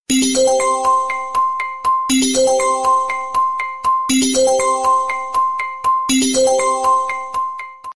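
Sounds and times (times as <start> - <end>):
latest iPhone ringtone: 0.1 - 7.9.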